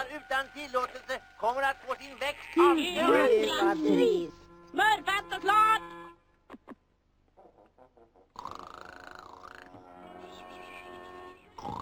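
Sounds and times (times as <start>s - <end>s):
speech: 0.2s - 6.0s
snoring: 8.4s - 9.6s.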